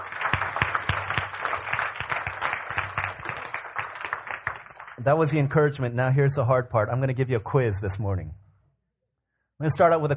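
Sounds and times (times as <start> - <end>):
audience applause: 0.0 - 5.0
speech: 5.0 - 8.4, 9.6 - 10.1.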